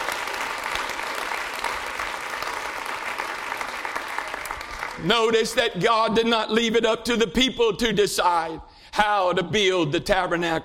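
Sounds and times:
audience clapping: 0.0s - 5.5s
speech: 5.0s - 10.6s.

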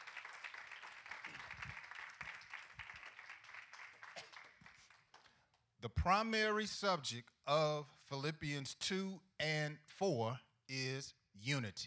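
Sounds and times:
audience clapping for the pastor: 0.0s - 5.6s
speech: 5.8s - 11.8s.

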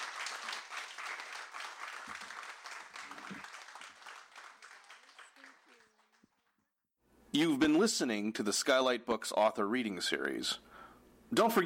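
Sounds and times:
audience applause for panelists: 0.0s - 6.7s
speech: 7.3s - 10.7s, 11.3s - 11.6s.

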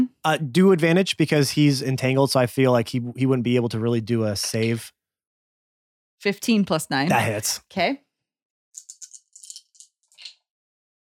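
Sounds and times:
speech: 0.2s - 5.0s, 6.2s - 8.0s
dice rattling across a hard surface: 8.8s - 10.3s.

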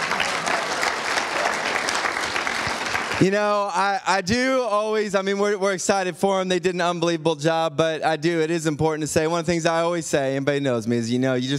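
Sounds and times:
audience applause for the True North Church State Youth Games champions: 0.0s - 3.7s
speech: 3.2s - 11.5s.

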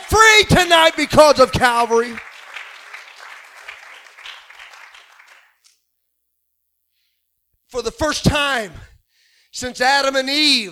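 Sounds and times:
audience clapping hands: 0.0s - 5.7s
speech: 0.1s - 2.3s, 7.7s - 8.9s, 9.5s - 10.7s.

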